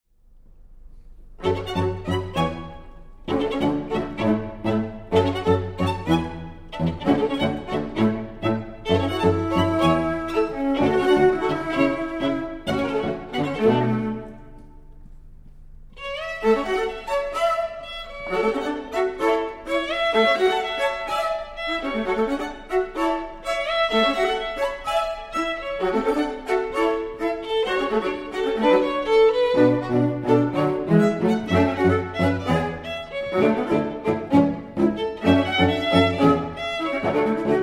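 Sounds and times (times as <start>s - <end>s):
strings: 0.4s - 37.6s.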